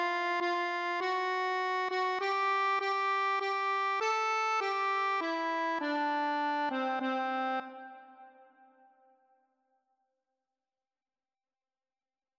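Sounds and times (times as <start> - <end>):
accordion playing a hymn: 0.0 - 8.0.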